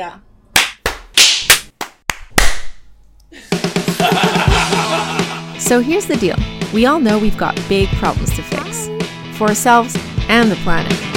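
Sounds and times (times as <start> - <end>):
speech: 0.0 - 0.3, 5.7 - 11.1
hand claps: 0.6 - 2.8
laughter: 3.4 - 5.6.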